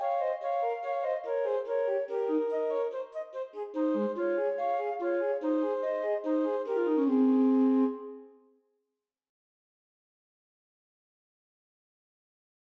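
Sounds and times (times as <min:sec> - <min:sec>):
two alto flutes in G playing a duet: 0:00.0 - 0:08.6.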